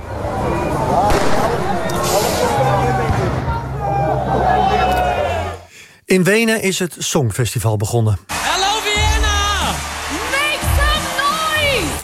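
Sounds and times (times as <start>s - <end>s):
protest crowd: 0.0s - 5.7s, 8.3s - 12.0s
fireworks thrown at a protest: 1.1s - 3.4s
speech: 6.1s - 8.4s.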